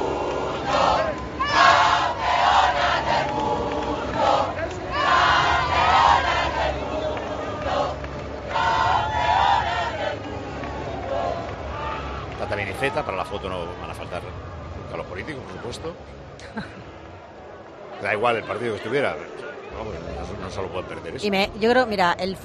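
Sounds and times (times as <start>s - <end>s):
team shouting during group photo: 0.0s - 13.7s
speech: 13.0s - 14.5s, 15.2s - 16.8s, 18.0s - 22.4s.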